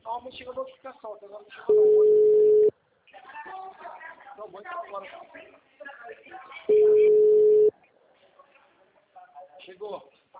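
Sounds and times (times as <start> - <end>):
speech: 0.2 - 2.1
telephone busy signal: 1.7 - 2.7, 6.7 - 7.7.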